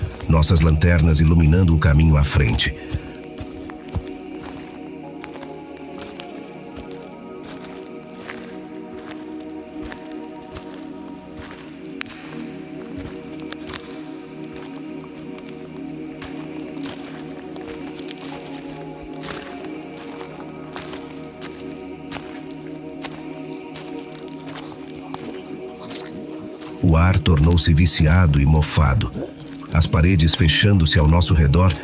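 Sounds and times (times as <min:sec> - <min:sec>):
speech: 0:00.3 - 0:03.0, 0:27.6 - 0:31.8
footsteps descending through a disguised corridor beneath a pyramid: 0:02.8 - 0:26.9.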